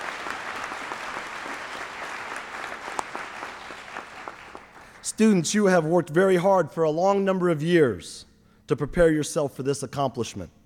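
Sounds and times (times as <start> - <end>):
applause welcoming graduating students at a ceremony: 0.0 - 5.2
speech: 5.0 - 10.6.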